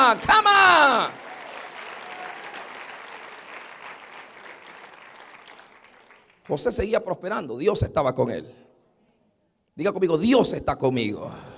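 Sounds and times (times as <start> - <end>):
audience applause: 0.0 - 6.4
speech: 0.1 - 1.2, 6.5 - 8.6, 9.8 - 11.5.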